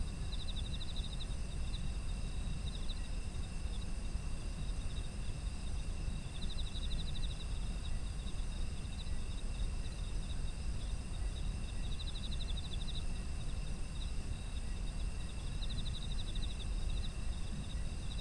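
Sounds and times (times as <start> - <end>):
insects trilling: 0.0 - 18.2.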